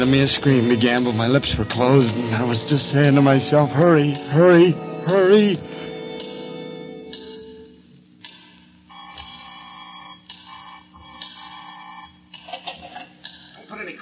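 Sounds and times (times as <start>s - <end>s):
speech: 0.0s - 5.8s
telephone bell ringing: 8.9s - 12.3s.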